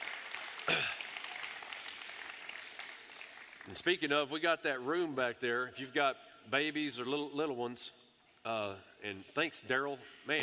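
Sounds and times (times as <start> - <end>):
audience applause: 0.0 - 3.9
speech: 3.7 - 10.4.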